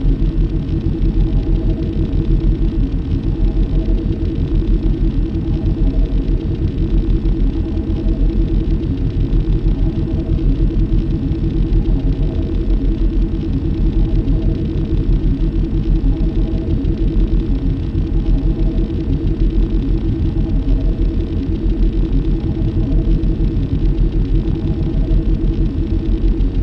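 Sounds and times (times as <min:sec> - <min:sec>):
shield generator: 0:00.0 - 0:26.6.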